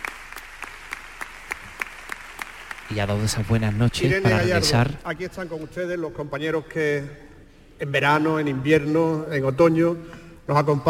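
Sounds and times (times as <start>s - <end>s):
audience applause: 0.0s - 3.9s
speech: 2.9s - 7.2s, 7.8s - 10.8s.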